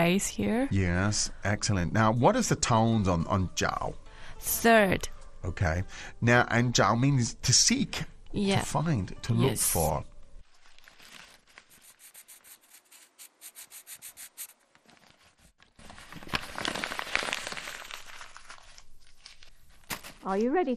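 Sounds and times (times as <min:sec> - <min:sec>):
speech: 0:00.0 - 0:10.1, 0:20.2 - 0:20.7
writing Chinese characters on paper: 0:11.6 - 0:14.6.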